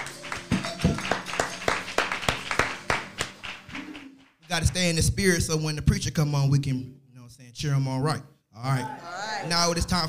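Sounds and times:
audience clapping in rhythm: 0:00.0 - 0:05.2
speech: 0:04.6 - 0:10.0.

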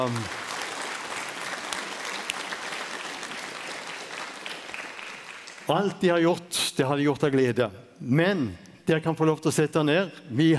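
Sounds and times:
speech: 0:00.0 - 0:00.4, 0:05.7 - 0:10.5
audience applause in a hall at a summer conference: 0:00.0 - 0:05.9.

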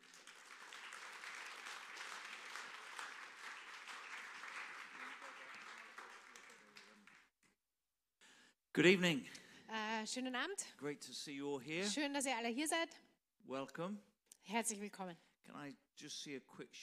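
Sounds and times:
strong welcoming applause: 0:00.0 - 0:07.4
speech: 0:08.8 - 0:09.4, 0:10.0 - 0:16.8.

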